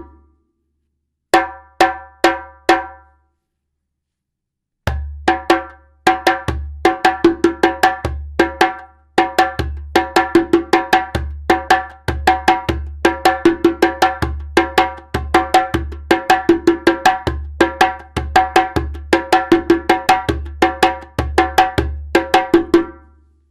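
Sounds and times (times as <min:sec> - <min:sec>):
djembe drumming: 0:01.3 - 0:03.1, 0:04.9 - 0:23.0.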